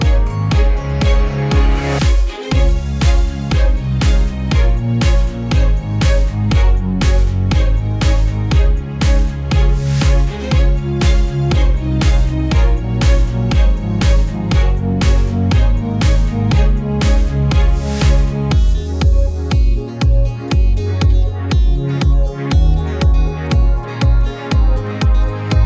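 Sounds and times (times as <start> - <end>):
backing track: 0.0 - 25.6.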